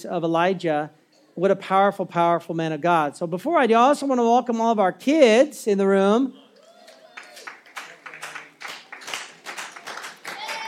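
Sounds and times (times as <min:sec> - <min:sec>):
speech: 0:00.0 - 0:06.4
children clapping in a church audience: 0:06.8 - 0:10.6.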